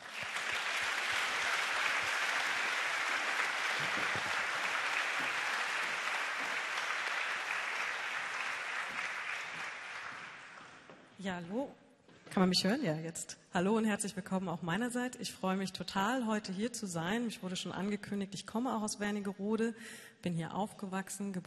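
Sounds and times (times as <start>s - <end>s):
audience applause: 0.0s - 10.9s
speech: 3.8s - 4.3s, 11.2s - 11.8s, 12.4s - 21.4s.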